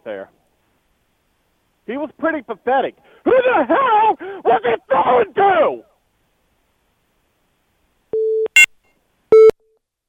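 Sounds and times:
speech: 0:01.9 - 0:05.9
phone line busy tone after a disconnect: 0:08.2 - 0:08.7, 0:09.3 - 0:09.6.

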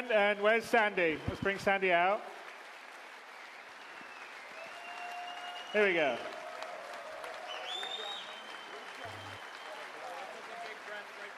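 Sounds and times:
speech: 0:00.1 - 0:02.4, 0:05.7 - 0:06.4
audience applause: 0:02.3 - 0:11.3.

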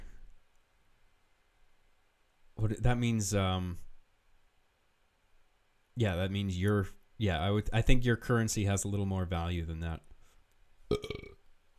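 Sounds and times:
speech: 0:02.6 - 0:03.9, 0:06.0 - 0:10.1, 0:10.9 - 0:11.3
loud low burp: 0:10.9 - 0:11.4.

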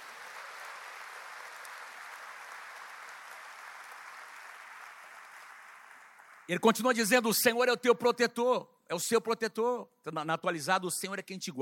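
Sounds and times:
audience applause: 0:00.0 - 0:06.5
speech: 0:06.5 - 0:11.6.

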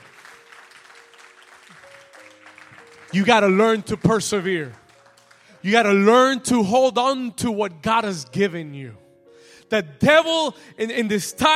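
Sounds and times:
audience hand clapping: 0:00.0 - 0:06.0
speech: 0:03.1 - 0:04.8, 0:05.6 - 0:09.0, 0:09.7 - 0:11.5.

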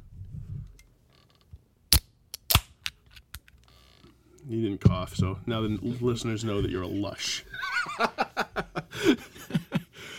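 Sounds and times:
drink can being cracked open: 0:01.9 - 0:03.6
speech: 0:04.5 - 0:09.3
laughter: 0:07.5 - 0:10.0.

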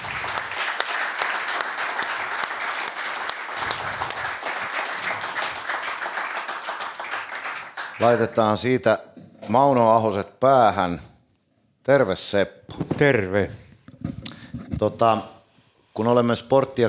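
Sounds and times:
live audience clapping: 0:00.0 - 0:08.8
speech: 0:08.0 - 0:11.1, 0:11.9 - 0:13.6, 0:14.8 - 0:15.4, 0:16.0 - 0:16.8.

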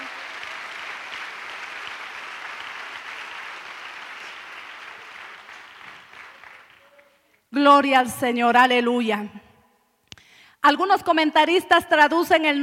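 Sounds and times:
audience applauding: 0:00.0 - 0:07.4
speech: 0:07.6 - 0:09.4, 0:10.6 - 0:12.6.

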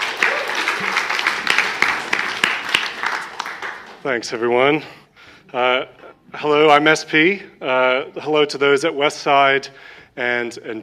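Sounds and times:
applause: 0:00.0 - 0:04.0
speech: 0:04.0 - 0:10.8.

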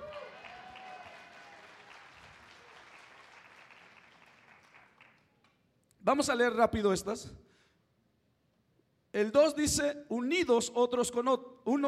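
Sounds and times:
crowd applauding: 0:00.0 - 0:05.5
speech: 0:06.1 - 0:07.5, 0:09.2 - 0:11.8.

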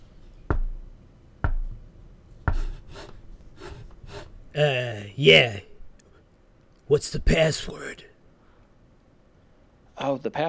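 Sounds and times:
knocking on a door: 0:00.0 - 0:04.5
speech: 0:04.6 - 0:05.7, 0:06.9 - 0:08.1, 0:10.0 - 0:10.4.

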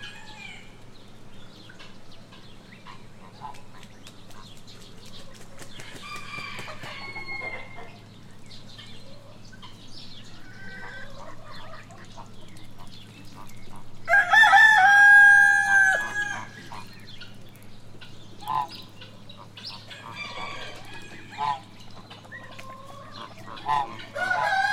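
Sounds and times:
ducks, hens and turkeys clucking and squawking: 0:01.6 - 0:24.7
loud rooster crow: 0:06.0 - 0:07.8, 0:14.1 - 0:16.6, 0:20.0 - 0:21.4, 0:24.1 - 0:24.7.

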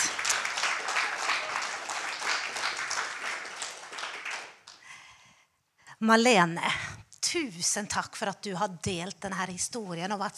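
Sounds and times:
crowd applauding: 0:00.0 - 0:04.9
speech: 0:06.0 - 0:10.3.

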